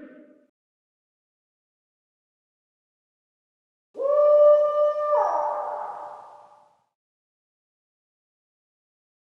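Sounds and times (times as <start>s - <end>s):
dark spooky sounds: 4.0s - 6.6s.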